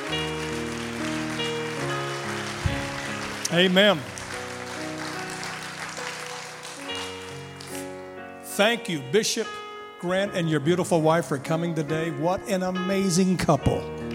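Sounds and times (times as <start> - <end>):
audience hand clapping: 0.0 - 8.0, 14.0 - 14.1
speech: 3.5 - 4.1, 8.6 - 14.0.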